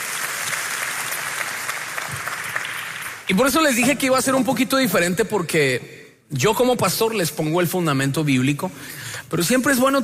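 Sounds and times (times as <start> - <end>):
audience applause: 0.0 - 3.3
speech: 3.3 - 10.0.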